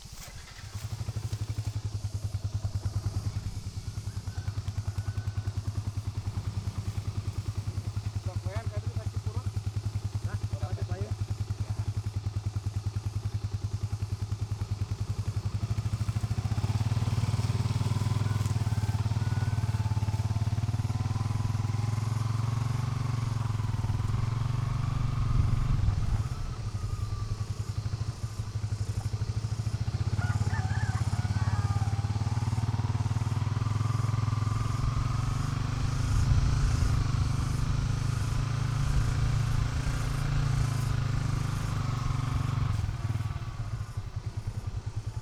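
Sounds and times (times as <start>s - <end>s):
tractor in a rice field: 0.0s - 45.2s.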